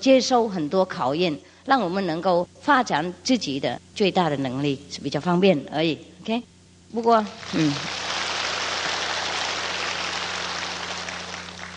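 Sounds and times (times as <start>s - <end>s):
speech: 0.0s - 8.0s
faint low hum: 0.0s - 11.7s
audience applause: 7.4s - 11.7s.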